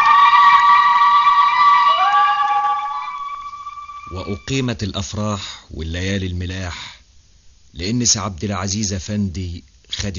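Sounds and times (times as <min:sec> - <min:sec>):
women's zaghrouta ululation at a family celebration: 0:00.0 - 0:04.5
speech: 0:04.3 - 0:07.0, 0:07.7 - 0:10.1.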